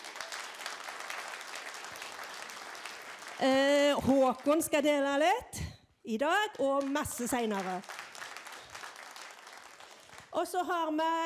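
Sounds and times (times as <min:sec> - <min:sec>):
audience applause: 0:00.0 - 0:04.6, 0:06.8 - 0:10.3
speech: 0:03.4 - 0:07.9, 0:10.4 - 0:11.2.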